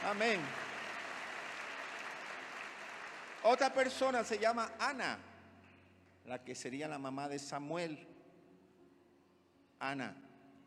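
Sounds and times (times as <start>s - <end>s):
speech: 0.0s - 0.6s, 3.4s - 5.3s, 6.2s - 8.2s, 9.8s - 10.2s
church congregation applauding: 0.0s - 5.8s.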